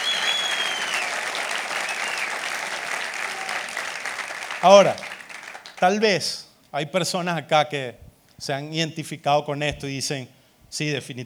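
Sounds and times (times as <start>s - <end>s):
loud audience applause: 0.0s - 6.1s
speech: 4.6s - 5.0s, 5.8s - 11.2s.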